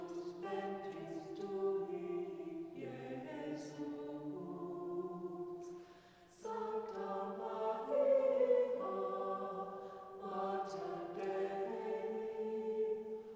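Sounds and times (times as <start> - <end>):
chant: 0.0 - 13.3.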